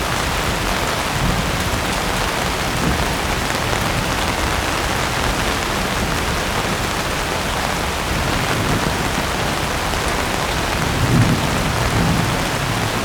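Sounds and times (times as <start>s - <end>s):
constant rain storm: 0.0s - 13.0s
distant thunder: 8.4s - 13.0s.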